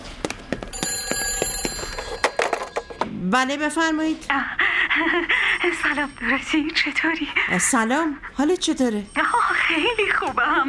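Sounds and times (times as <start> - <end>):
telephone ringing: 0.7 - 3.8
speech: 3.2 - 10.6.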